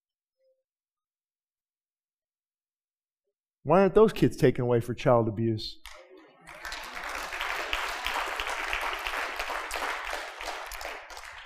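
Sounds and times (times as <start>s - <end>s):
speech: 3.6s - 6.0s
audience clapping: 5.8s - 11.4s.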